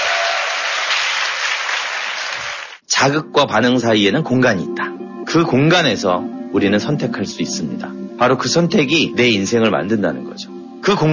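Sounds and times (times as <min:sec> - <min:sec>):
audience applause: 0:00.0 - 0:02.8
speech: 0:03.0 - 0:11.1.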